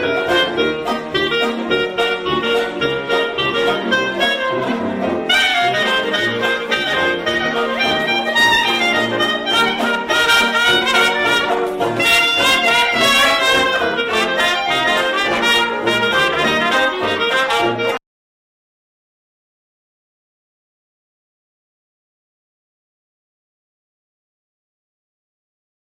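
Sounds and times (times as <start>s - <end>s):
dixieland band playing: 0.0s - 18.0s.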